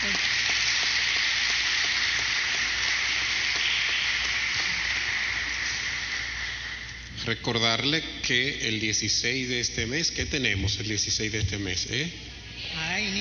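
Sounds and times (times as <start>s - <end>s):
crowd applause: 0.0s - 7.1s
speech: 7.2s - 13.1s.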